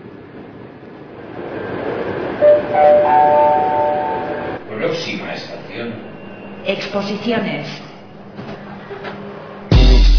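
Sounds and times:
metro train at rush hour rumbling: 0.0 - 10.0
high tonal whine: 1.4 - 8.5
speech: 5.8 - 7.9.

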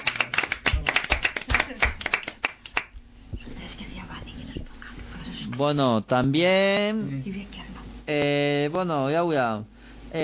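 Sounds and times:
audience applause: 0.0 - 2.9
speech: 5.6 - 10.2.

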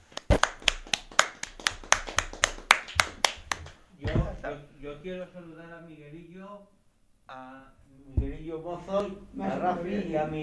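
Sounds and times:
applause: 0.0 - 3.8
speech: 4.5 - 10.4.

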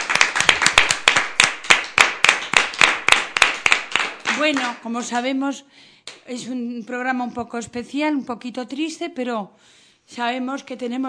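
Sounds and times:
applause: 0.0 - 5.1
speech: 4.4 - 11.0.

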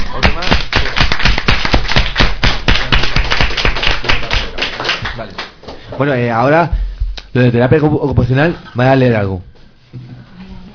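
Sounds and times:
group applause: 0.0 - 5.6
speech: 6.0 - 10.2.

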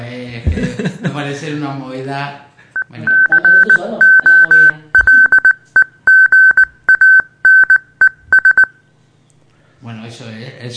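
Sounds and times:
speech: 0.1 - 4.2, 10.1 - 10.7
laughter: 0.5 - 1.2
high-pitched tone beeping Morse code: 2.8 - 8.8.

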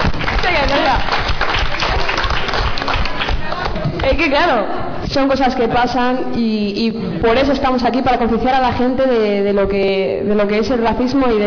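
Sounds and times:
audience applause at a gathering about racism: 0.0 - 4.0
speech: 4.1 - 11.4.

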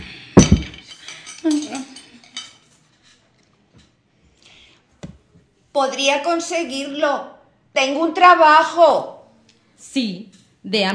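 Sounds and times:
plate being cleared from the table with dishware clinking and scraping: 0.0 - 4.0
speech: 5.8 - 9.1, 9.9 - 10.9.

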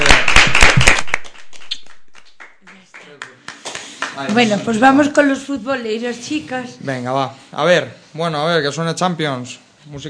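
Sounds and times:
loud clapping: 0.0 - 4.4
speech: 4.2 - 10.0.

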